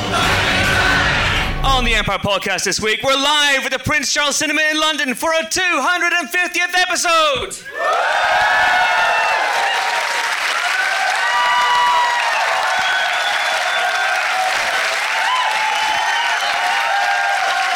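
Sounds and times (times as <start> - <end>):
live audience whooping and cheering: 0.1 - 1.6, 7.6 - 17.7
speech: 1.8 - 8.5
live audience applause at a show recording in a London cinema: 7.7 - 17.7.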